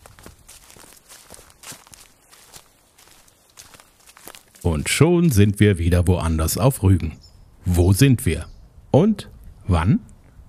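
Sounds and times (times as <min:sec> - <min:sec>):
footsteps walking on flint stones: 0:00.0 - 0:05.6
speech: 0:04.6 - 0:10.1.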